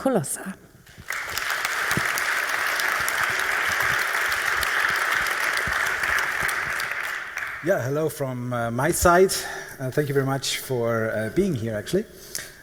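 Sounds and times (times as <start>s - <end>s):
speech: 0.0s - 0.7s, 7.6s - 12.4s
audience applause: 0.9s - 7.8s.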